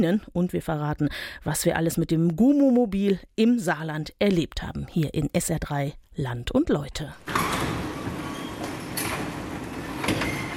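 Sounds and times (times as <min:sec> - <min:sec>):
speech: 0:00.0 - 0:07.7
garage door being opened: 0:07.2 - 0:10.5.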